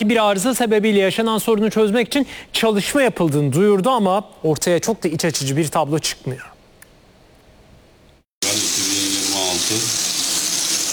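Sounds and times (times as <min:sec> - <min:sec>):
speech: 0:00.0 - 0:06.5
muddy water running from a household tap into a sink: 0:08.4 - 0:10.9.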